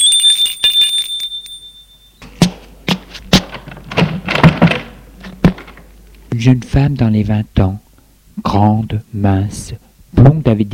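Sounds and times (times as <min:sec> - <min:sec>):
doorbell ringing: 0:00.0 - 0:02.2
thumps and clunks: 0:02.2 - 0:05.9
speech: 0:06.4 - 0:07.8, 0:08.4 - 0:10.7.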